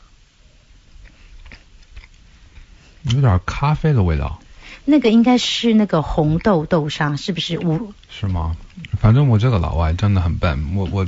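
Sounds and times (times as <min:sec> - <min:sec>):
crisp bites and chewing on a chocolate mooncake: 0:00.8 - 0:03.3, 0:06.0 - 0:11.0
speech: 0:03.0 - 0:11.0.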